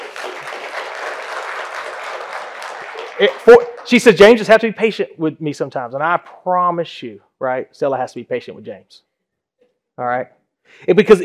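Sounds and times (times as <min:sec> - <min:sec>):
audience clapping: 0:00.0 - 0:04.6
speech: 0:03.2 - 0:09.1, 0:10.0 - 0:11.2.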